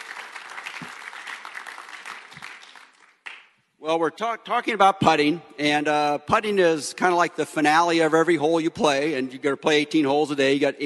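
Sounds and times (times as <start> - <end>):
audience applause welcoming a guest at a talk about golf putting: 0.0 - 3.4
speech: 3.8 - 10.8.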